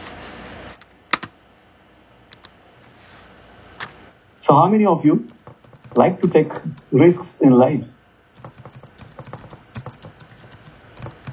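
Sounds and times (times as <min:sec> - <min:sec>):
computer keyboard typing a reply in an online chat box: 0:01.1 - 0:01.3, 0:05.3 - 0:06.9, 0:08.4 - 0:11.3
low hiss: 0:03.0 - 0:05.4, 0:06.0 - 0:08.3
speech: 0:04.4 - 0:05.4, 0:06.0 - 0:08.0.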